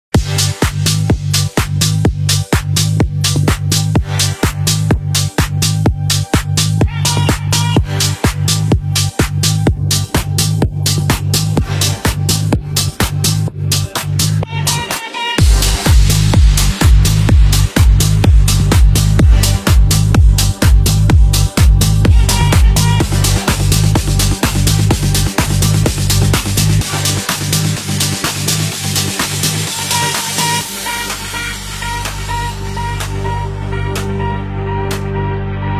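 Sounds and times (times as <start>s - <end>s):
deep house club dance music: 0.1s - 35.7s.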